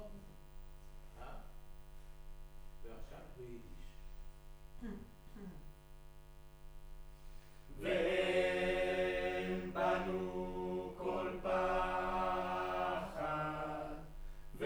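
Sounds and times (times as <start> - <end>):
choir singing in room: 7.7 - 14.6.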